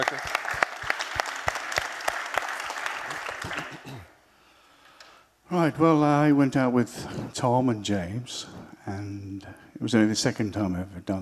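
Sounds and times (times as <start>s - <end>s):
audience applause: 0.0s - 4.0s
speech: 5.5s - 11.2s.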